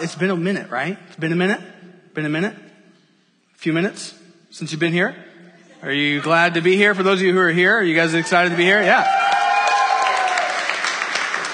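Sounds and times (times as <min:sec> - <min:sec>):
speech: 0:00.0 - 0:02.7, 0:03.6 - 0:09.2
studio audience clapping: 0:08.2 - 0:11.5.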